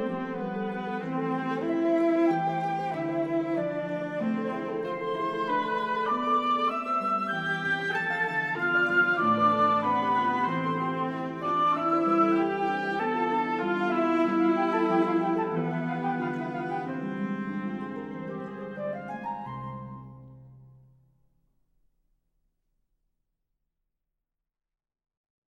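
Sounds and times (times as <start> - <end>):
oboe in a quartet: 0.0 - 20.4
flute in a quartet: 0.0 - 20.5
cello in a quartet: 0.0 - 20.7.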